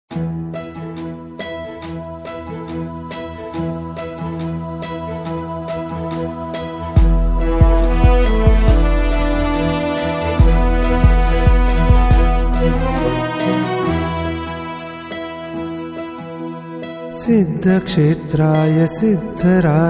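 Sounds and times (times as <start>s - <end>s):
instrumental tune: 0.1s - 19.8s.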